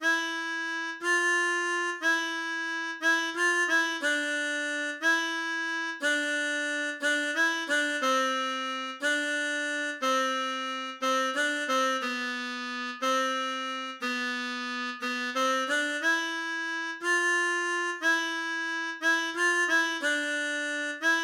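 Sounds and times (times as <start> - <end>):
harmonica waltz: 0.0 - 21.2.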